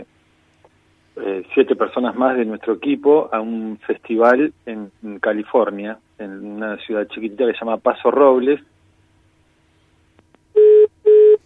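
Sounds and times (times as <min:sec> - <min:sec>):
speech: 0:01.3 - 0:08.7
phone dial tone: 0:10.6 - 0:11.4.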